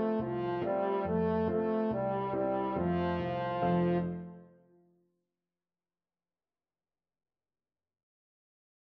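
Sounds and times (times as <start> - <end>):
French horn: 0.0 - 4.6.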